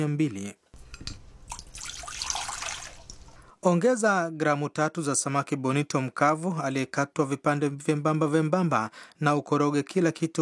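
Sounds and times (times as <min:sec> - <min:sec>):
speech: 0:00.0 - 0:01.2, 0:03.6 - 0:10.4
water poured into a saucepan holding soy sauce and sugar: 0:00.8 - 0:03.6.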